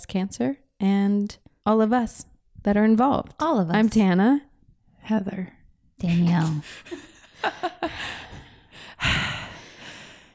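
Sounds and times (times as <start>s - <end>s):
speech: 0.0s - 8.2s
person taking a deep breath: 7.9s - 10.3s.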